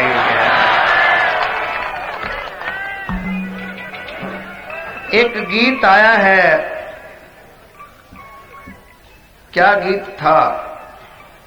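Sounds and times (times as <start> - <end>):
audience applause: 0.0 - 3.2
crowd cheering and voices: 0.0 - 7.8
speech: 5.1 - 6.7, 9.5 - 10.7.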